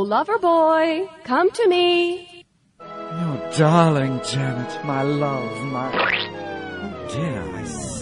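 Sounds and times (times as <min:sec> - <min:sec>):
speech: 0:00.1 - 0:02.3, 0:03.2 - 0:06.2, 0:07.1 - 0:07.8
squashed swamp toad squealing croak: 0:05.9 - 0:06.3.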